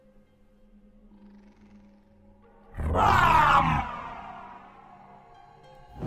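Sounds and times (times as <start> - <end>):
sorceress's earth-shaking spell-casting shout: 2.7 - 5.0.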